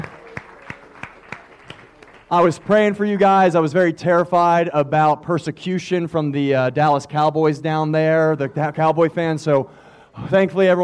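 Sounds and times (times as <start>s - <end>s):
audience applause: 0.0s - 3.2s
speech: 2.3s - 10.8s.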